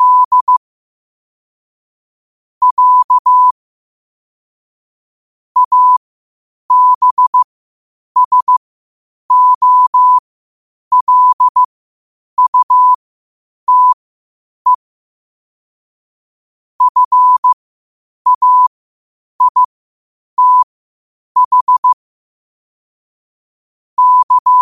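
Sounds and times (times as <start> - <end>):
morse code at 5 wpm: 0.0 - 0.6, 2.6 - 3.5, 5.6 - 6.0, 6.7 - 7.5, 8.2 - 8.6, 9.3 - 10.2, 10.9 - 11.7, 12.4 - 13.0, 13.7 - 14.0, 16.8 - 17.6, 18.3 - 18.7, 19.4 - 19.7, 20.4 - 20.7, 21.4 - 22.0, 24.0 - 24.5.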